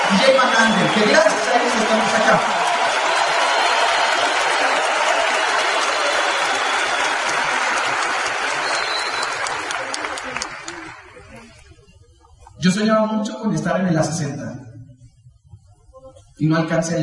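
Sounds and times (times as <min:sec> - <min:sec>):
audience applause: 0:00.0 - 0:11.6
speech: 0:00.1 - 0:02.7, 0:12.6 - 0:14.5, 0:16.4 - 0:17.0.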